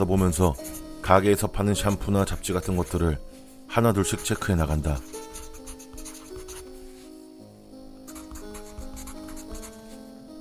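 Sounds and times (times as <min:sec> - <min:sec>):
speech: 0:00.0 - 0:05.3
ballpoint pen writing on a notepad: 0:00.2 - 0:00.9, 0:01.7 - 0:03.1, 0:04.2 - 0:07.2, 0:08.1 - 0:10.0.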